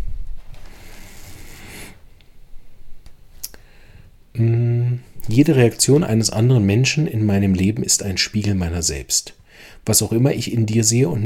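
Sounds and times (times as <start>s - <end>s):
flipping through book pages: 0.4s - 2.0s
speech: 5.3s - 11.2s.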